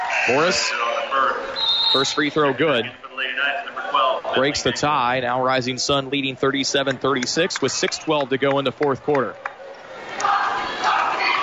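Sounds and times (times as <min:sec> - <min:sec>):
high school basketball gym crowd cheering: 0:00.0 - 0:02.6, 0:06.2 - 0:11.4
speech: 0:00.2 - 0:03.0, 0:04.3 - 0:09.5.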